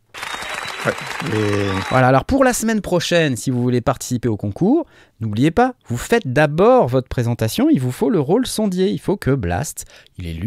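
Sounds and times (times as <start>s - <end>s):
hand clapping: 0.1s - 2.0s
speech: 0.8s - 10.4s.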